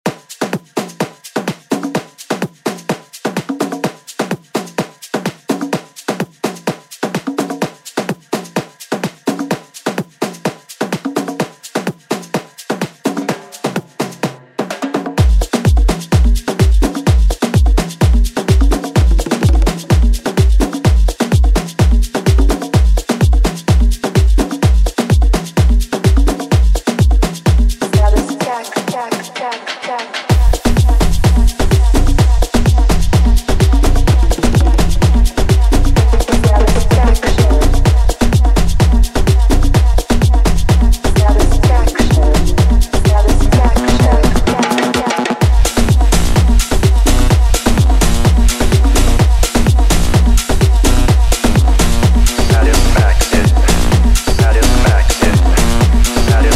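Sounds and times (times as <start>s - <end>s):
afro house music: 0.0s - 56.5s.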